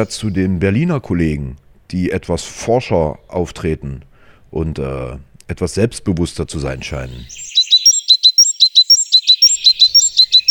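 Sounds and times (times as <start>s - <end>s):
speech: 0.0s - 7.6s
bird singing in Berlin: 7.0s - 10.4s.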